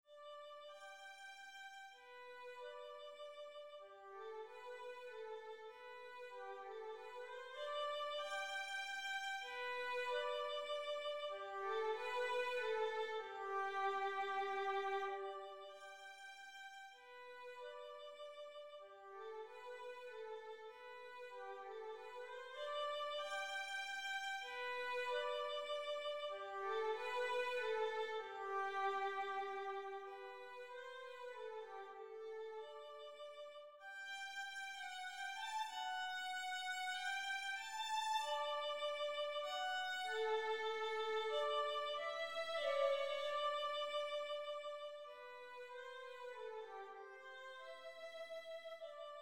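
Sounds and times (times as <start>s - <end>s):
minuet: 2.1s - 49.2s.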